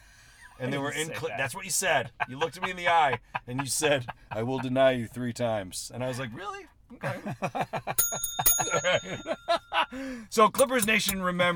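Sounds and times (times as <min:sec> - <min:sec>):
speech: 0:00.6 - 0:11.5
laughter: 0:02.0 - 0:04.8, 0:06.9 - 0:10.0
small bicycle-style bell ringing: 0:08.0 - 0:11.2.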